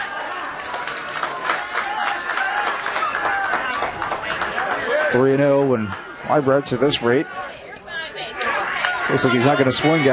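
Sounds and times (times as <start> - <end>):
scattered clapping from baseball fans: 0.0 - 6.0, 7.8 - 9.7
speech: 5.1 - 7.4, 9.1 - 10.1.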